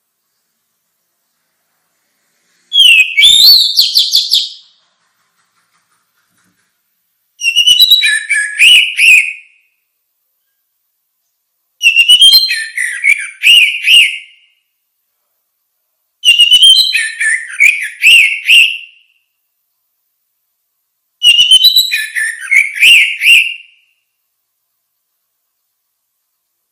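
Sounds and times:
Orange-headed thrush song: 0:01.8 - 0:04.8, 0:07.4 - 0:09.8, 0:11.8 - 0:14.7, 0:16.2 - 0:19.3, 0:21.2 - 0:24.1.

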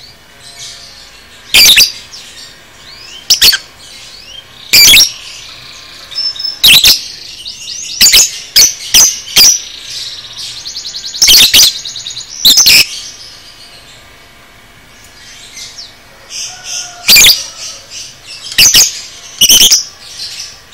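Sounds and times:
lovebird shrieking: 0:01.5 - 0:02.3, 0:02.9 - 0:10.0, 0:11.0 - 0:13.2, 0:15.3 - 0:20.7.

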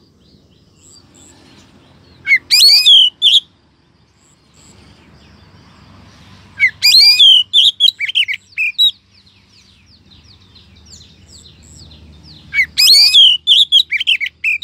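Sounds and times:
Oriental magpie-robin rising whistle: 0:02.2 - 0:03.5, 0:06.6 - 0:09.0, 0:12.5 - 0:14.6.

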